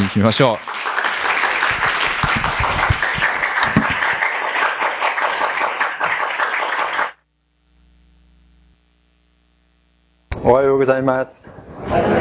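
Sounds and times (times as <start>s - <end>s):
crowd applause welcoming speaker: 0.0s - 7.2s
speech: 0.1s - 0.8s, 10.5s - 12.1s.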